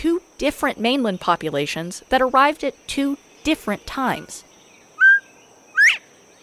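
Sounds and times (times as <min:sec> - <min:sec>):
speech: 0:00.0 - 0:04.5
Northern Bobwhite two-part whistle: 0:05.0 - 0:06.1.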